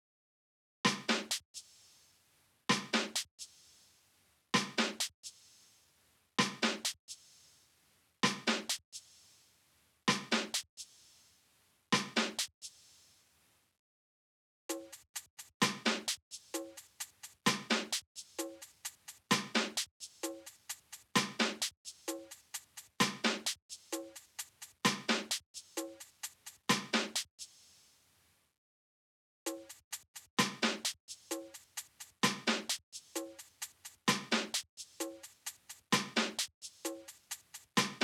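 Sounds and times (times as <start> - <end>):
drums: 0.9 - 2.0, 2.7 - 3.9, 4.6 - 5.8, 6.4 - 7.6, 8.2 - 9.4, 10.1 - 11.3, 11.9 - 13.1, 14.7 - 27.9, 29.5 - 38.0.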